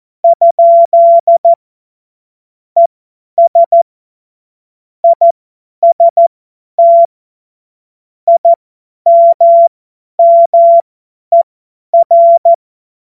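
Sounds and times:
CW Morse code beeps: 0:00.2 - 0:01.6, 0:02.8 - 0:03.8, 0:05.0 - 0:06.2, 0:06.8 - 0:07.1, 0:08.3 - 0:11.4, 0:12.0 - 0:12.6.

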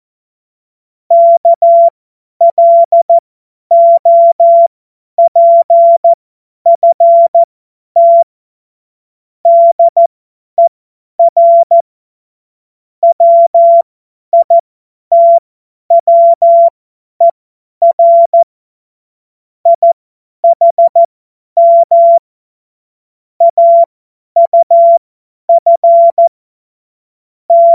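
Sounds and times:
Morse code course tones: 0:01.1 - 0:06.1, 0:06.7 - 0:08.3, 0:09.5 - 0:11.8, 0:13.0 - 0:15.4, 0:15.9 - 0:16.8, 0:19.7 - 0:22.3, 0:23.4 - 0:25.0, 0:25.5 - 0:26.3, 0:27.5 - 0:27.7.

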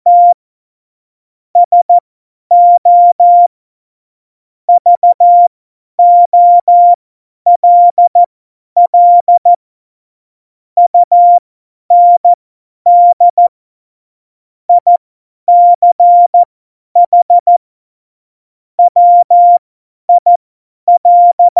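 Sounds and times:
CW Morse code beeps: 0:00.1 - 0:00.4, 0:01.6 - 0:03.5, 0:04.7 - 0:08.3, 0:08.9 - 0:09.5, 0:10.9 - 0:13.5, 0:14.7 - 0:17.6, 0:18.8 - 0:21.5.

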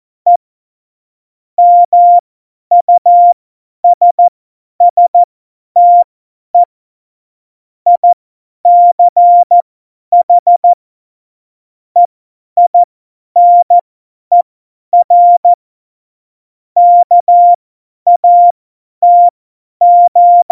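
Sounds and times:
CW Morse code beeps: 0:01.6 - 0:06.0, 0:07.9 - 0:09.6, 0:10.2 - 0:10.8, 0:12.7 - 0:14.4, 0:15.0 - 0:15.6, 0:16.8 - 0:20.5.

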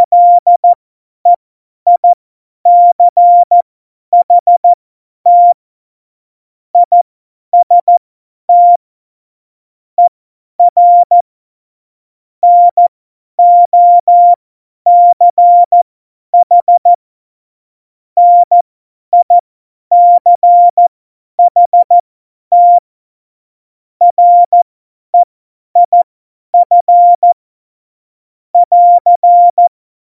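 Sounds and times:
CW Morse code beeps: 0:00.0 - 0:00.7, 0:02.7 - 0:03.6, 0:04.2 - 0:04.7, 0:05.3 - 0:05.6, 0:06.8 - 0:07.0, 0:07.6 - 0:08.8, 0:10.0 - 0:11.2, 0:12.4 - 0:15.8, 0:16.4 - 0:17.0, 0:18.2 - 0:22.9, 0:24.0 - 0:24.6, 0:25.2 - 0:26.0, 0:26.6 - 0:27.4, 0:28.6 - 0:29.7.

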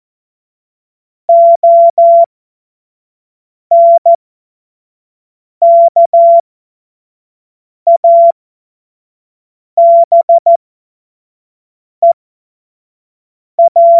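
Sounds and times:
Morse code course tones: 0:01.3 - 0:02.3, 0:03.7 - 0:04.2, 0:05.6 - 0:06.4, 0:09.8 - 0:10.6, 0:13.6 - 0:13.9.

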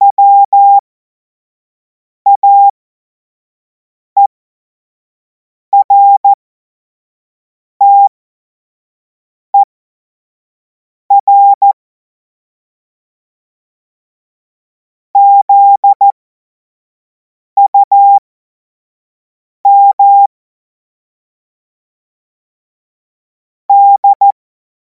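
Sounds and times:
CW Morse code beeps: 0:00.1 - 0:00.8, 0:02.3 - 0:02.7, 0:05.8 - 0:06.4, 0:07.8 - 0:08.1, 0:11.1 - 0:11.8, 0:15.2 - 0:16.1, 0:17.7 - 0:18.2, 0:19.7 - 0:20.3, 0:23.7 - 0:24.4.

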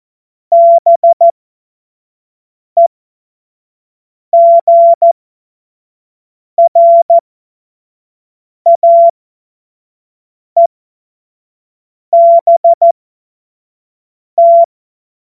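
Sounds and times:
CW Morse code beeps: 0:00.5 - 0:01.3, 0:04.4 - 0:05.1, 0:06.6 - 0:07.2, 0:08.7 - 0:09.1, 0:12.2 - 0:12.9, 0:14.4 - 0:14.7.

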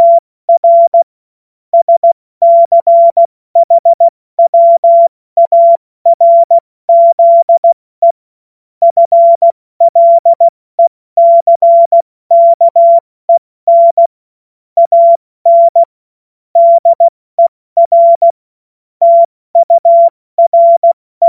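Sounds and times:
CW Morse code beeps: 0:00.0 - 0:01.1, 0:01.8 - 0:08.2, 0:08.8 - 0:13.0, 0:13.7 - 0:14.1, 0:14.8 - 0:15.9, 0:16.6 - 0:17.1, 0:17.8 - 0:18.4, 0:19.0 - 0:21.2.

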